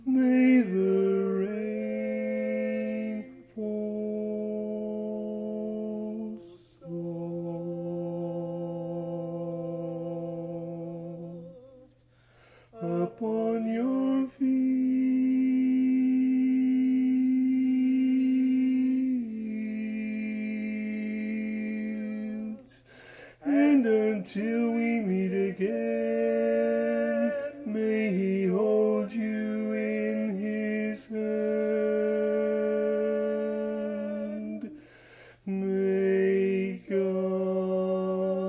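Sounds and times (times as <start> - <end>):
baritone singing: 0.0 - 12.0, 12.7 - 38.4.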